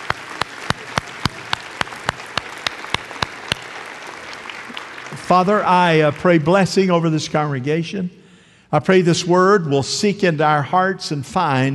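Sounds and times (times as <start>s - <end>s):
congregation clapping: 0.0s - 7.0s
speech: 5.2s - 11.7s.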